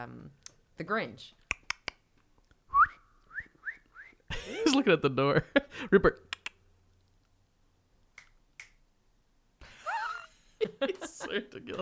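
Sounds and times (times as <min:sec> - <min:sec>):
speech: 0:00.0 - 0:01.4, 0:04.5 - 0:06.3, 0:10.6 - 0:11.7
hand patting a dog's rump: 0:01.5 - 0:01.9
laughter: 0:04.3 - 0:06.3, 0:09.6 - 0:11.7.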